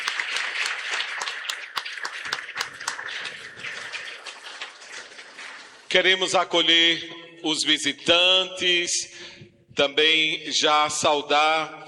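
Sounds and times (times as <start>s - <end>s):
audience applause: 0.0s - 5.9s
speech: 5.9s - 11.8s.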